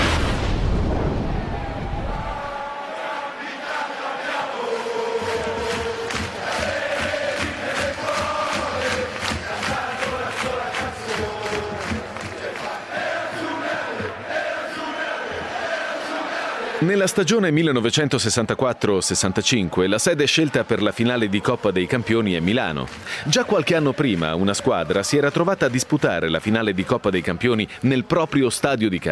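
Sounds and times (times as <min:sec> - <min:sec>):
low rumbling burst: 0:00.0 - 0:02.6
crowd of football fans roaring and chanting in Milan in a rainstorm: 0:01.0 - 0:29.0
speech: 0:16.9 - 0:29.0.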